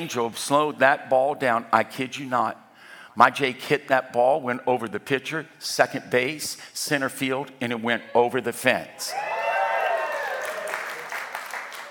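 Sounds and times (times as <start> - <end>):
speech: 0.0 - 2.6, 3.2 - 9.3
audience clapping: 9.6 - 11.8.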